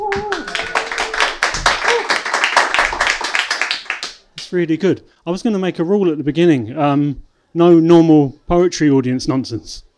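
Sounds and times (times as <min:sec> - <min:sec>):
audience cheering and shouting: 0:00.0 - 0:02.2
audience clapping: 0:00.0 - 0:04.6
speech: 0:04.5 - 0:09.9.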